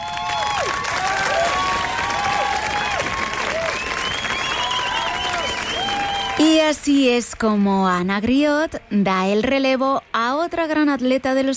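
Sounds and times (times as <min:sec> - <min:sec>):
audience standing ovation applause: 0:00.0 - 0:06.8
speech: 0:06.4 - 0:11.5.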